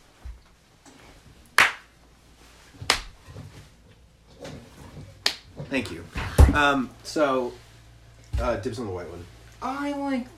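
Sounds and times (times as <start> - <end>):
hand claps for audio sync: 1.6 - 1.9, 2.9 - 3.2, 5.2 - 5.5
speech: 5.7 - 7.6, 8.4 - 10.3.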